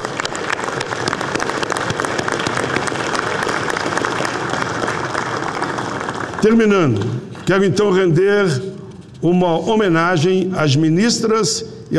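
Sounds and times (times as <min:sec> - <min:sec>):
applause: 0:00.0 - 0:08.0
speech: 0:06.4 - 0:11.9.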